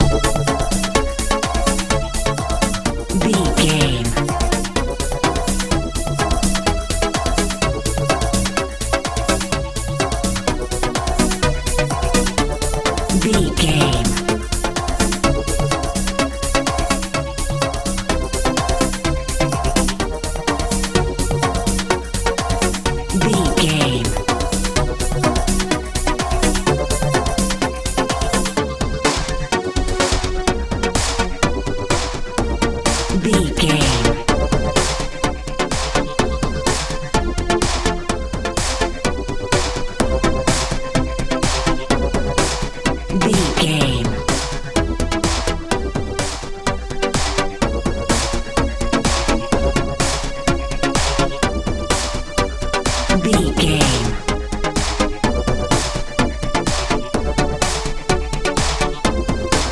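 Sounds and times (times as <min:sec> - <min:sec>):
modern dance music: 0:00.0 - 0:59.6.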